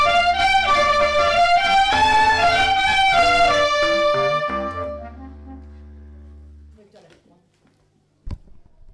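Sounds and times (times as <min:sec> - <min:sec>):
clarinet playing a suite: 0:00.0 - 0:06.6.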